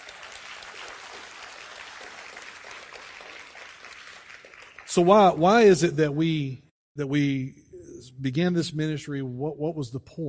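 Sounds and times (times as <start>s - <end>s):
audience round of applause: 0.0s - 5.7s
speech: 4.9s - 10.2s.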